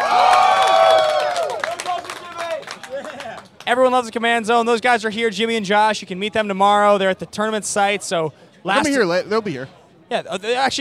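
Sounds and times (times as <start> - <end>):
audience applause: 0.0 - 3.6
speech: 3.7 - 10.7.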